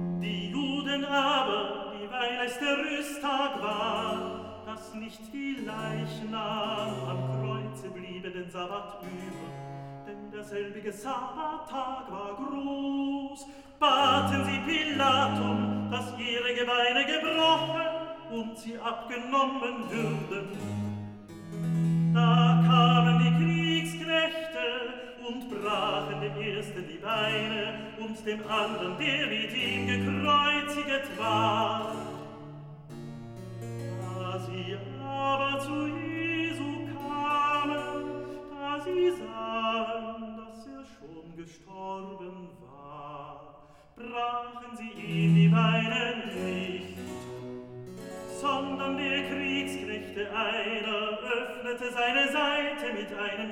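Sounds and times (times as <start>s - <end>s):
recitative singing: 0.1s - 9.5s, 10.1s - 20.8s, 22.0s - 32.5s, 33.8s - 47.1s, 48.3s - 53.5s.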